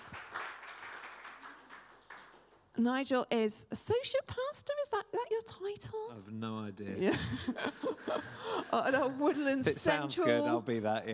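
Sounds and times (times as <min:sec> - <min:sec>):
audience applause for Nigel: 0:00.0 - 0:02.6
speech: 0:02.8 - 0:11.1
laughter: 0:07.0 - 0:09.9.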